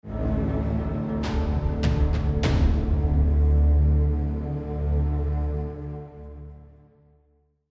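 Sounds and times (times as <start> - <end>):
tension music: 0.0 - 6.9.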